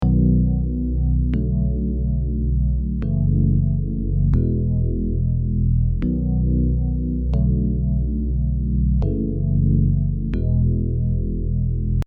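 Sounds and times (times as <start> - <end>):
Rhodes electric piano: 0.0 - 12.0.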